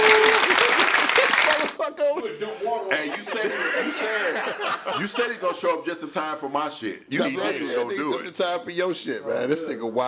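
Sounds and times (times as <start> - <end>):
audience clapping for a performer: 0.0 - 1.8
laughter: 0.2 - 5.9
speech: 4.0 - 10.0.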